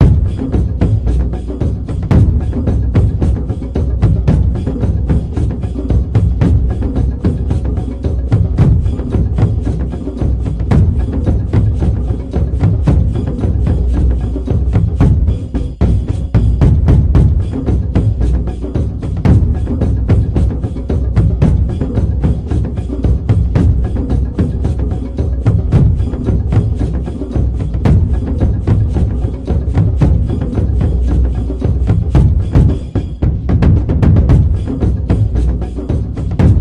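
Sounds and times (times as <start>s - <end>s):
combat drums: 0.0s - 36.5s.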